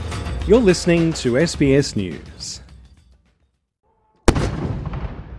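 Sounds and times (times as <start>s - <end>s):
speech: 0.5s - 2.6s
ceremonial gun salute cannon shot for Queen Elizabeth II at Parliament House: 4.3s - 5.3s.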